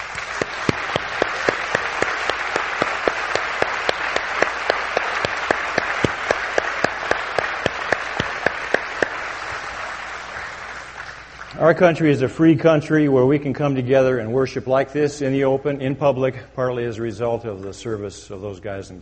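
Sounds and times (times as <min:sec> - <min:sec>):
crowd applauding: 0:00.0 - 0:11.6
speech: 0:11.6 - 0:19.0.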